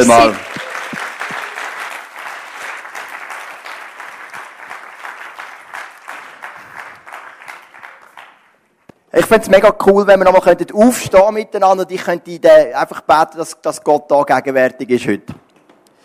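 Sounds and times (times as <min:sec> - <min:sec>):
speech: 0:00.0 - 0:00.5, 0:09.3 - 0:15.4
crowd applauding: 0:00.0 - 0:08.6.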